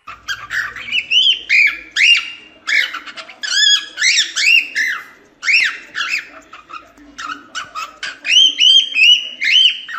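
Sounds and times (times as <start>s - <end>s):
lutino cockatiel singing scratchy warble: 0.0s - 9.9s.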